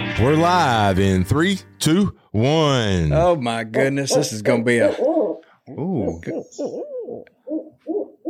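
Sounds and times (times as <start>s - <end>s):
speech: 0.2s - 7.4s
hunter imitating an owl hoot: 4.1s - 8.1s.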